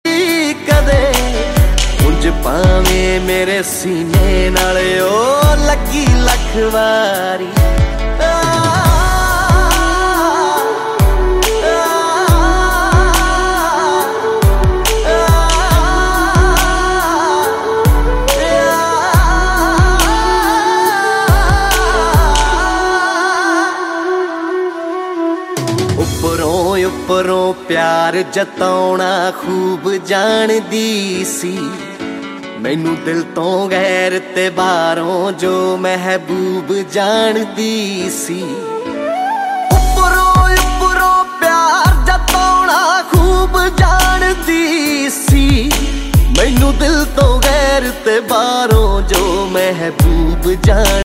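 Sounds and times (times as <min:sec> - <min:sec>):
Punjabi songs: 0:00.0 - 0:51.0.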